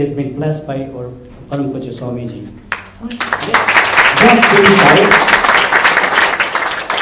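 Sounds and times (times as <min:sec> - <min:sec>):
speech: 0:00.0 - 0:05.6
audience clapping: 0:02.7 - 0:07.0.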